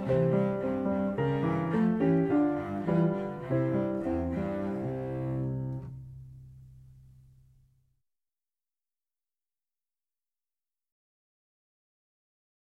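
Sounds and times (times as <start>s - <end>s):
cello: 0.0s - 7.3s
piano: 0.0s - 7.8s.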